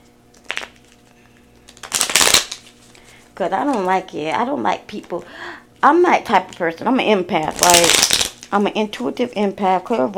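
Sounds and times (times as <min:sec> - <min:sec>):
magic cards being shuffled and drawn: 0:00.3 - 0:03.0, 0:07.5 - 0:08.5
speech: 0:03.4 - 0:10.1.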